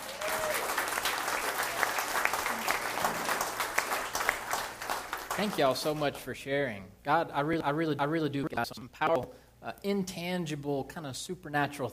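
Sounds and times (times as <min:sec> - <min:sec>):
audience applause: 0:00.0 - 0:06.0
speech: 0:05.4 - 0:11.9.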